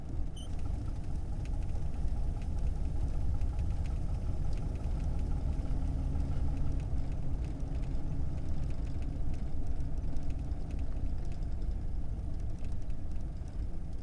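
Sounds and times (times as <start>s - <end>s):
1937 Plymouth car engine starting: 0.1s - 13.9s
1937 Plymouth car driving away: 0.4s - 10.3s.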